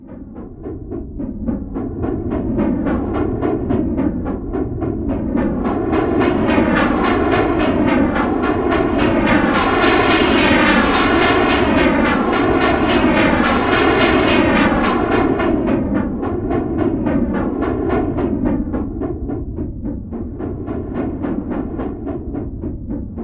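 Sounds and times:
phased train sound: 0.1 - 23.2.

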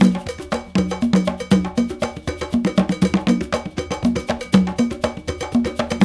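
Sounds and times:
bembe world dance rhythm in six-eight: 0.0 - 6.0.

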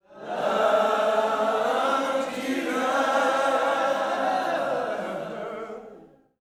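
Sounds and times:
gospel music: 0.1 - 6.2.

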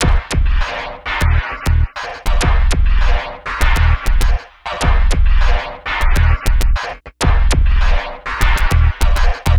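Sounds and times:
zappy electronic loop: 0.0 - 6.9, 7.6 - 9.5.

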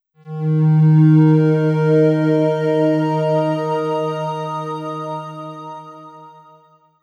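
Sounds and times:
FM synth pad in D sharp: 0.3 - 6.6.

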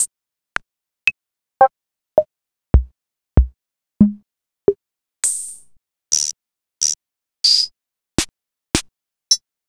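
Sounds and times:
Roland MV8800 drum machine with CR-78 drums: 2.8 - 4.2, 6.1 - 8.9.

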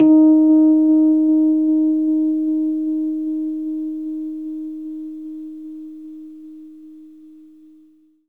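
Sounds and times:
Rhodes electric piano playing D sharp: 0.0 - 6.4.

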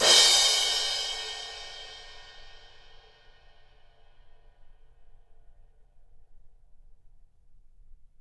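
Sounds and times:
drums and percussion: 0.0 - 2.8.

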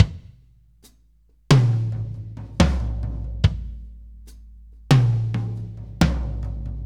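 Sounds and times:
laid back drum loop: 1.5 - 6.8.

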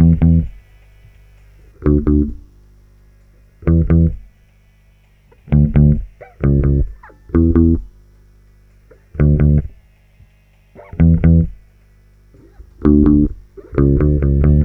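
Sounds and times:
bass groove: 0.0 - 0.6, 1.8 - 2.5, 3.6 - 4.3, 5.4 - 8.0, 9.0 - 9.9, 10.8 - 11.7, 12.3 - 14.6.

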